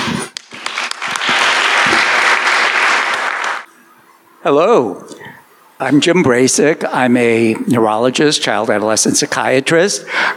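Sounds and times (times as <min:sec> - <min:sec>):
audience applause: 0:00.4 - 0:03.7
speech: 0:04.4 - 0:05.1, 0:05.8 - 0:10.3.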